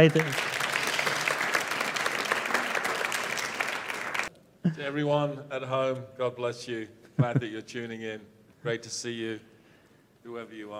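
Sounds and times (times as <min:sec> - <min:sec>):
speech: 0:00.0 - 0:00.5, 0:04.6 - 0:09.5, 0:10.2 - 0:10.7
audience applause: 0:00.0 - 0:04.3.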